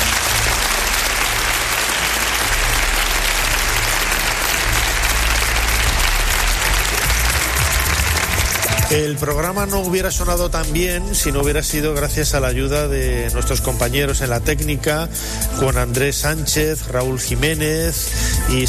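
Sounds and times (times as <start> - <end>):
applause: 0.0 - 9.1
speech: 8.9 - 18.6.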